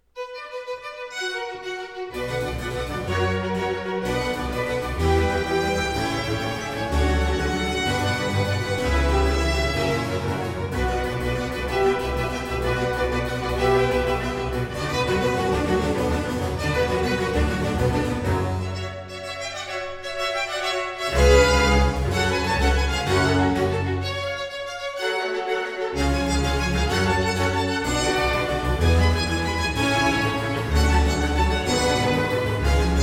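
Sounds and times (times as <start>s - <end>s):
concerto in C minor for strings and harpsichord: 0.2s - 33.0s.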